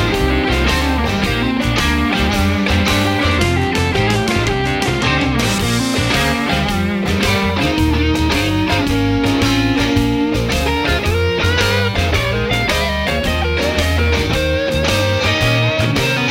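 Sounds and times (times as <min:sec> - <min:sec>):
B-flat blues swing music: 0:00.0 - 0:16.2.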